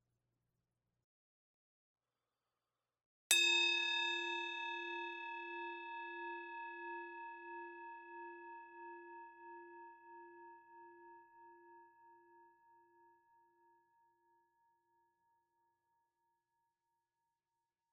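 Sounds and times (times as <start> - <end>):
meditation bell ringing at the close of a meditation: 3.3 - 9.0.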